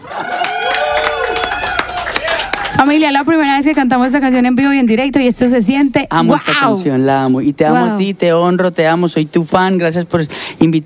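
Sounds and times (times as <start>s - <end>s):
audience applause: 0.0s - 3.2s
speech: 2.8s - 10.8s.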